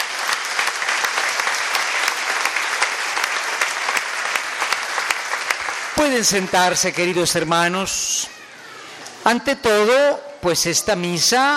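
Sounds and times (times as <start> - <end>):
audience applause: 0.0 - 7.4
speech: 6.0 - 8.3, 9.2 - 11.5.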